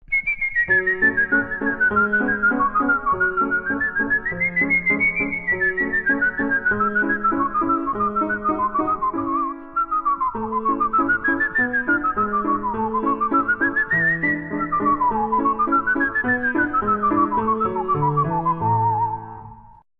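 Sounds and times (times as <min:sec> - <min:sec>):
whistler whistling a Turkish rondo: 0:00.0 - 0:19.8.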